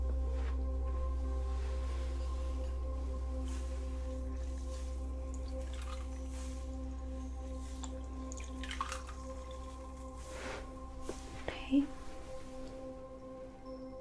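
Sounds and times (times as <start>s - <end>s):
steady low hum: 0.0s - 13.8s
damp cloth sponge wiping the face during a spa facial: 1.4s - 8.2s, 9.3s - 12.7s
speech: 11.7s - 12.0s.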